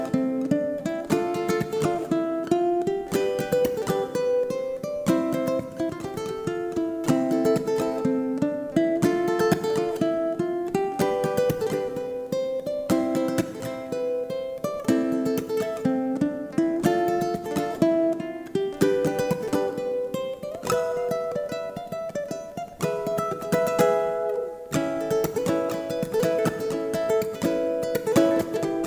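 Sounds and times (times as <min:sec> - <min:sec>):
ukulele: 0:00.0 - 0:28.8.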